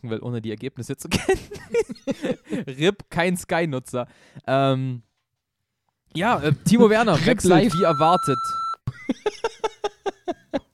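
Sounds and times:
speech: 0.0 - 5.1, 6.1 - 10.6
laughter: 1.1 - 2.7, 8.9 - 10.7
voice imitating the bleep with pitched syllables: 7.2 - 8.9
censor bleep tone: 7.6 - 8.8.

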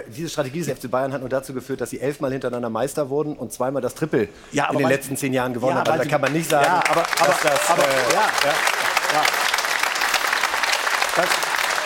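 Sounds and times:
speech: 0.1 - 9.4, 11.2 - 11.4
studio audience applause: 5.8 - 11.8.

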